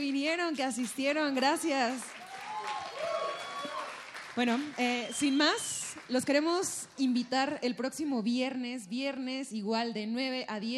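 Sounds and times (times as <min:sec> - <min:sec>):
speech: 0:00.0 - 0:02.8, 0:04.4 - 0:10.7
audience applause: 0:01.8 - 0:06.1.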